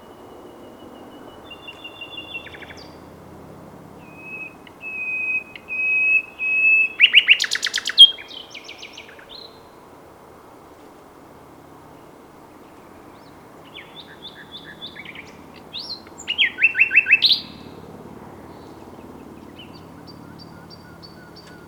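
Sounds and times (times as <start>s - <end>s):
common nightingale singing: 0.0s - 3.0s, 4.0s - 9.6s, 12.9s - 17.7s, 18.5s - 21.6s.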